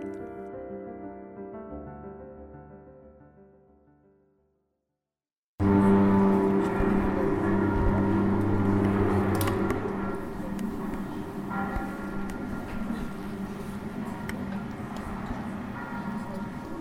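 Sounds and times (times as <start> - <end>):
ship horns: 5.6 - 16.6
bells ringing: 5.7 - 16.6.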